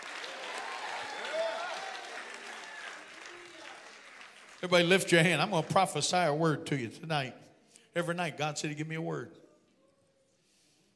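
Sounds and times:
people cheering: 0.0 - 5.8
audience applause: 0.0 - 6.1
speech: 4.6 - 9.4.

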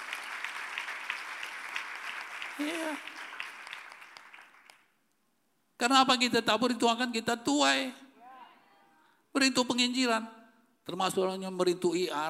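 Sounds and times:
applause: 0.0 - 5.0
speech: 2.6 - 3.2, 5.8 - 8.0, 9.4 - 12.2.

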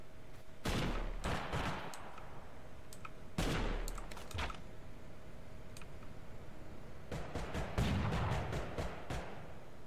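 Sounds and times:
gunfire in the video game Totally Accurate Battlegrounds: 0.6 - 2.0, 3.4 - 4.5, 7.1 - 9.6.

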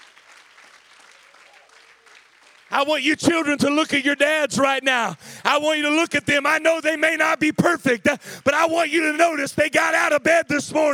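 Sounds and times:
audience applauding: 0.0 - 3.0
speech: 2.7 - 10.9.

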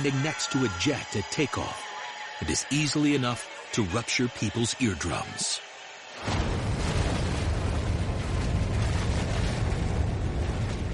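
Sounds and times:
speech: 0.0 - 6.4
volcanic eruption blast: 6.2 - 10.9.

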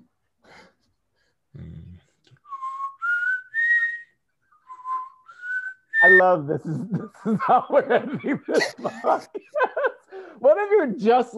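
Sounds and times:
person whistling a tune: 2.4 - 6.2
speech: 6.1 - 9.6, 10.4 - 11.3
laughter: 6.6 - 10.4.

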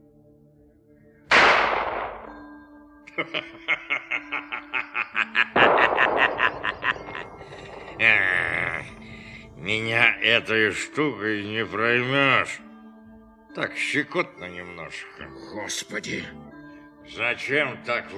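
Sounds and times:
character's gunshot: 1.3 - 2.6, 5.6 - 8.2
speech: 3.2 - 12.7, 13.6 - 18.1
laughter: 12.4 - 14.9, 17.4 - 18.1.

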